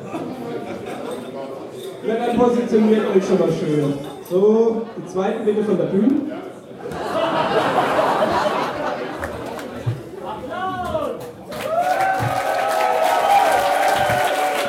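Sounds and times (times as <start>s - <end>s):
speech: 2.1s - 6.4s
laughter: 6.7s - 9.9s
audience applause: 11.5s - 14.6s.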